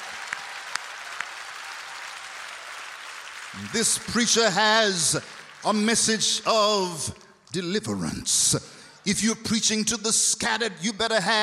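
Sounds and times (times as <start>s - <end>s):
audience applauding: 0.0s - 6.4s
speech: 3.5s - 11.4s.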